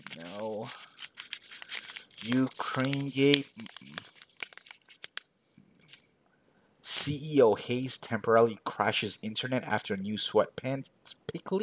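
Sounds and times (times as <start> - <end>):
paper pages flipping: 0.0 - 6.1
speech: 2.2 - 3.9, 7.1 - 11.6.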